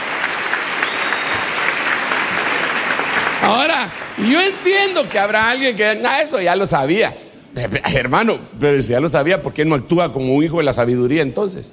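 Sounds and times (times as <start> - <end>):
audience applause: 0.0 - 5.8
speech: 3.4 - 11.7.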